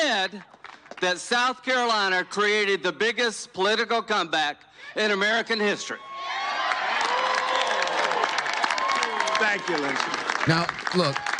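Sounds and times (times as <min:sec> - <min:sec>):
speech: 0:00.2 - 0:06.4, 0:09.4 - 0:11.3
large crowd booing: 0:05.9 - 0:11.3.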